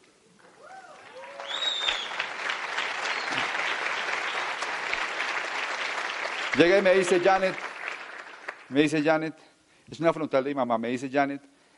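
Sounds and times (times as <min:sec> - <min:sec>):
audience applause: 0:00.4 - 0:08.8
whoops and voices: 0:00.5 - 0:02.2
speech: 0:06.6 - 0:07.7, 0:08.7 - 0:11.5.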